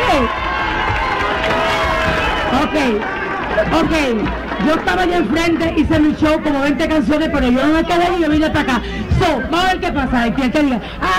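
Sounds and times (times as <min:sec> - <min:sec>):
crowd applauding: 0:00.0 - 0:07.0
speech: 0:00.2 - 0:00.4, 0:02.5 - 0:11.1.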